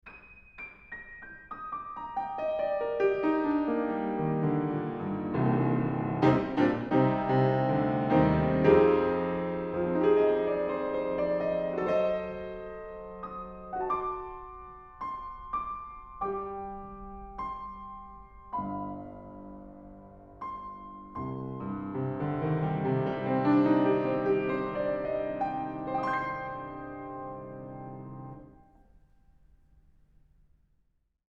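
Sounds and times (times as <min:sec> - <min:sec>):
piano: 0:00.0 - 0:30.6.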